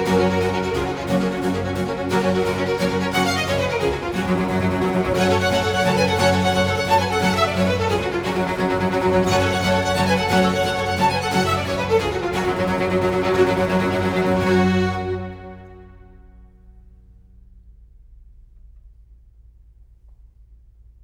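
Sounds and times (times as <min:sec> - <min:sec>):
concerto in G major: 0:00.0 - 0:16.0.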